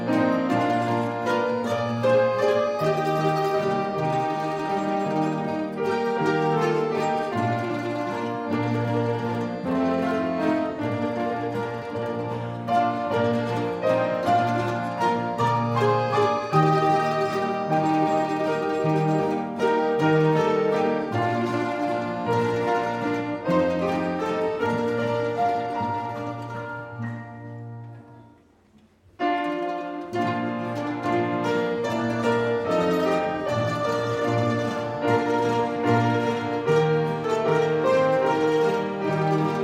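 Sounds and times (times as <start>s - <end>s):
orchestra playing: 0.0s - 39.6s.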